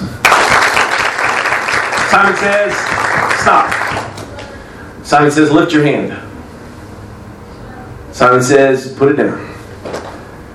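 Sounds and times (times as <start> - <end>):
crowd clapping hands: 0.0 - 4.4
speech: 2.1 - 4.1, 5.1 - 6.2, 8.2 - 9.5.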